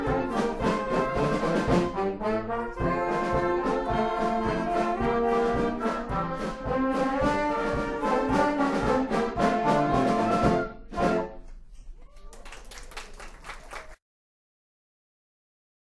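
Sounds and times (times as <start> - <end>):
German march music: 0.0 - 11.5.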